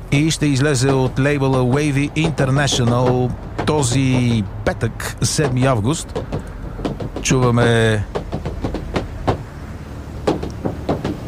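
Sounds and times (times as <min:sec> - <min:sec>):
speech: 0:00.1 - 0:06.5, 0:07.2 - 0:08.2
boots stomping on a Korean car roof: 0:00.2 - 0:09.6, 0:10.2 - 0:11.2.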